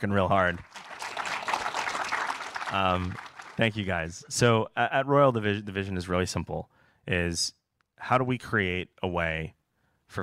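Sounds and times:
speech: 0.0 - 0.9, 2.7 - 10.2
audience applause: 0.4 - 4.0.

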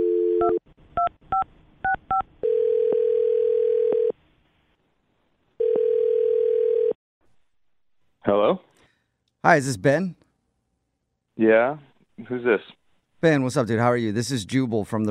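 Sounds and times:
steady phone tone: 0.0 - 0.6, 2.1 - 4.1, 5.6 - 7.0
speech: 9.4 - 10.2, 11.4 - 15.0.

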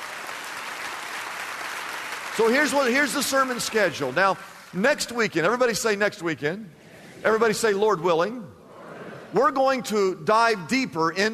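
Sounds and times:
audience applause: 0.0 - 4.8
speech: 2.4 - 8.6, 9.3 - 11.3.

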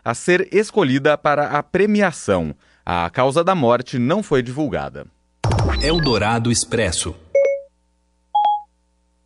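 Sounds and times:
speech: 0.0 - 5.2, 5.8 - 7.2
Siri voice assistant activation chime: 5.7 - 6.3, 7.3 - 7.7, 8.4 - 8.7.

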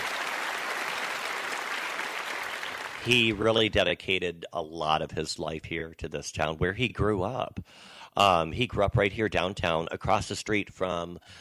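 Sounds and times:
audience applause: 0.0 - 3.4
speech: 3.0 - 11.3.

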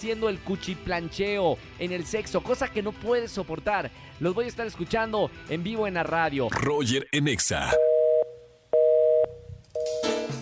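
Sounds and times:
speech: 0.0 - 7.9
telephone line tone before voicemail transfer: 7.7 - 10.1.

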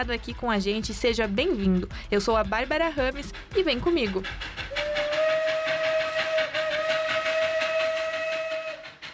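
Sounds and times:
speech: 0.0 - 4.8
steam whistle of the Maria Fumaça steam locomotive of Ponta Grossa: 4.7 - 9.1.

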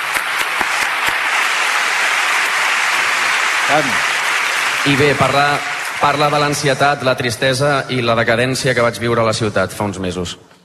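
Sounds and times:
audience applause: 0.0 - 7.4
speech: 3.7 - 4.1, 4.8 - 10.5.

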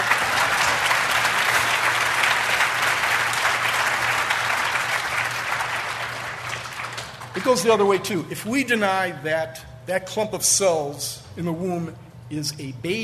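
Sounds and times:
audience applause: 0.0 - 7.8
speech: 7.4 - 13.0.

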